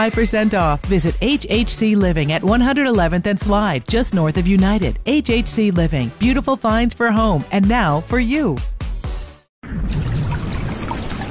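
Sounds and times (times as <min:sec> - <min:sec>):
speech: 0:00.0 - 0:08.7
water leaking through a roof: 0:09.8 - 0:11.2.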